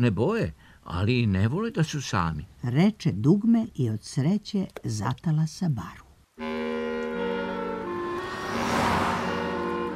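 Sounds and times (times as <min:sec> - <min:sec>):
speech: 0:00.0 - 0:06.0
sustained tones: 0:07.5 - 0:09.9
car passing along a road splashing water: 0:08.2 - 0:09.9.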